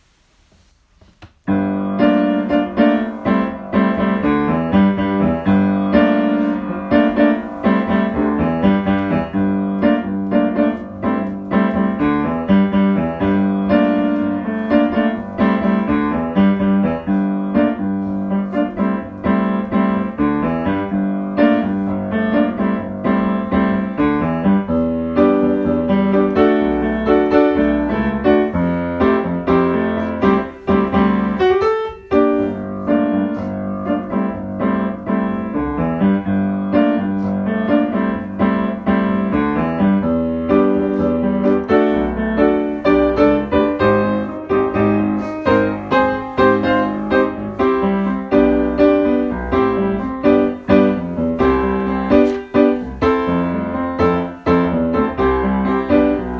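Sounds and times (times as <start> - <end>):
musical accompaniment: 1.5 - 56.3.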